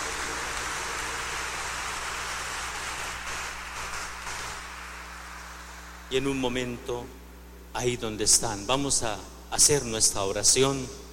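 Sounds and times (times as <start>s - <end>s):
applause: 0.0s - 6.2s
speech: 6.1s - 11.0s.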